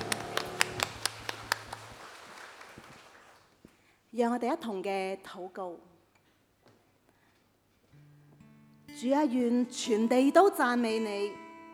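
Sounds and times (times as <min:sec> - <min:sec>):
church congregation clapping in praise of God: 0:00.0 - 0:03.6
speech: 0:04.2 - 0:05.9, 0:09.0 - 0:11.4.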